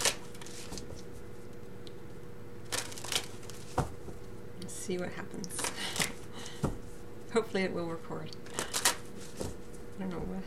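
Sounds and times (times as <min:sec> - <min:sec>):
Sensual Wicca Tarot deck being shuffled and cards drawn: 0:00.0 - 0:01.2, 0:02.6 - 0:04.2, 0:05.5 - 0:06.7, 0:08.4 - 0:10.0
speech: 0:04.9 - 0:05.8, 0:07.3 - 0:08.5, 0:10.0 - 0:10.4.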